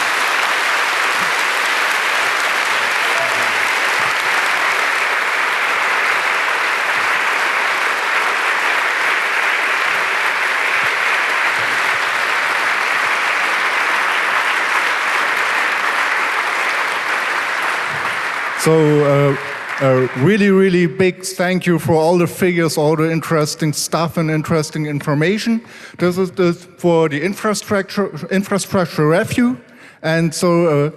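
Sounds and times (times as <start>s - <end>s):
audience applause: 0.0s - 21.1s
speech: 18.6s - 30.9s.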